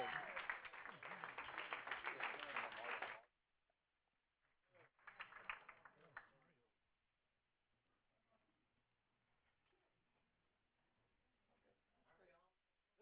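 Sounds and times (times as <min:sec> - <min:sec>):
audience applause welcoming a speaker: 0:00.0 - 0:03.2, 0:05.0 - 0:06.3.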